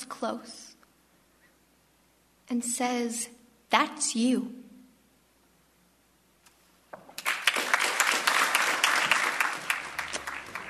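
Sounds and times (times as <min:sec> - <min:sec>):
speech: 0:00.2 - 0:00.7, 0:02.5 - 0:04.6
sharp individual claps: 0:06.4 - 0:10.6
audience clapping after poem reading: 0:07.0 - 0:10.6.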